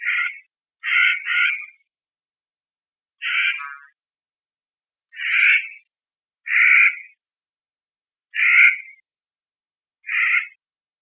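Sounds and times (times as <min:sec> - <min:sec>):
Clark's nutcracker rasping calls: 0:00.0 - 0:01.9, 0:03.2 - 0:04.0, 0:05.1 - 0:07.2, 0:08.3 - 0:09.0, 0:10.0 - 0:10.6.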